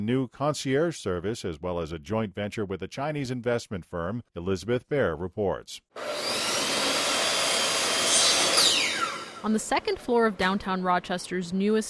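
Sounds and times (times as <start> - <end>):
speech: 0.0 - 6.5, 9.4 - 11.8
power tool whirring while installing baseboard trim in office space: 6.0 - 9.7.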